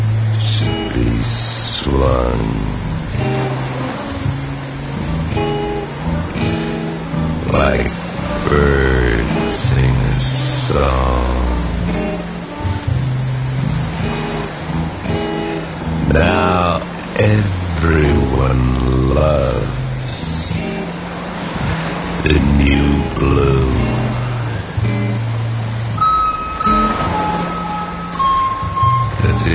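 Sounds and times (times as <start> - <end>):
blue noise mix: 0.0 - 29.5.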